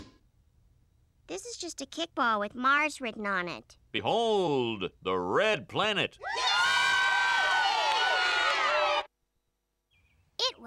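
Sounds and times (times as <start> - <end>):
speech: 1.3 - 6.5
audience cheering: 6.2 - 9.1
audience applause: 7.4 - 9.1.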